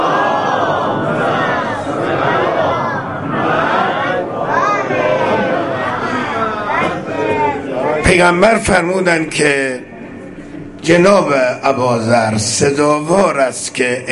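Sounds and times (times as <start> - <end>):
crowd chanting a salawat in unison: 0.0 - 8.1
speech: 8.2 - 9.8, 10.9 - 14.1.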